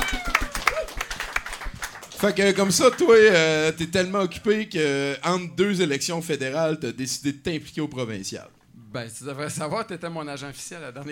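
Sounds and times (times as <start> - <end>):
audience applause for guest: 0.0 - 3.2
speech: 2.2 - 11.1.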